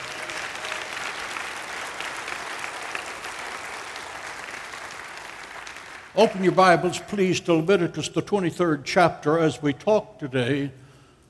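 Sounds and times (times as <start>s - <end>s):
audience applause: 0.0s - 6.9s
speech: 6.2s - 10.8s.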